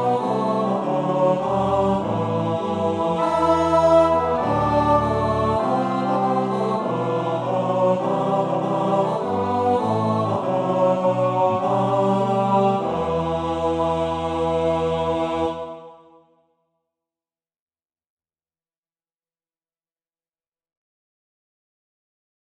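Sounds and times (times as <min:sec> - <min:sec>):
tenor singing: 0:00.0 - 0:15.8.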